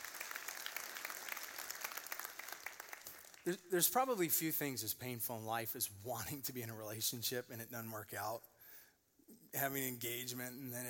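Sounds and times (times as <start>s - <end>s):
audience clapping: 0.0s - 3.6s
speech: 3.4s - 8.5s, 9.5s - 10.8s.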